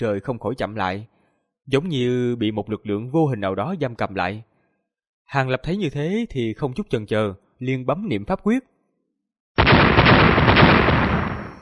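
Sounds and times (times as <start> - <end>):
speech: 0.0 - 4.5, 5.3 - 8.7
violent explosion: 9.6 - 11.6.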